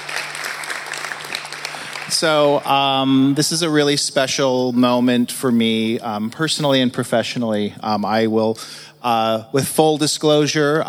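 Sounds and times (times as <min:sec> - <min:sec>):
audience applause: 0:00.0 - 0:02.8
speech: 0:02.2 - 0:10.8.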